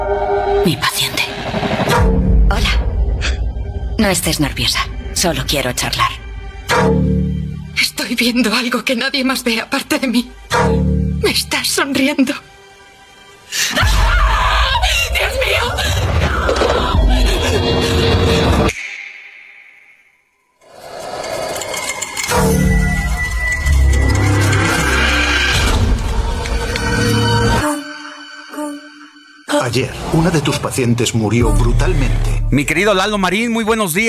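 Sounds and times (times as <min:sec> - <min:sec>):
dense dramatic horror film sound: 0:00.0 - 0:34.0
speech: 0:00.6 - 0:01.3, 0:04.0 - 0:06.2, 0:08.0 - 0:12.5, 0:29.8 - 0:34.0
screaming in horror film audio: 0:13.8 - 0:17.1.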